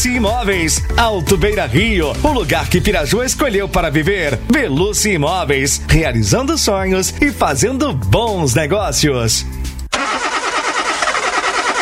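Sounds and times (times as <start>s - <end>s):
speech: 0.0s - 9.7s
car engine cranking, struggling to start on a dead battery: 9.9s - 11.8s.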